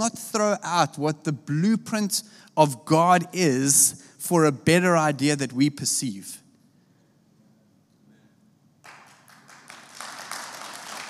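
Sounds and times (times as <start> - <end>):
speech: 0.0 - 6.4
hand clapping: 8.8 - 11.0.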